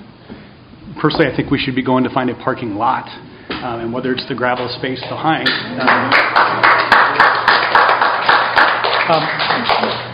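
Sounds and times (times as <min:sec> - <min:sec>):
speech: 0:01.0 - 0:06.8, 0:09.1 - 0:09.9
audience applause: 0:04.6 - 0:10.1.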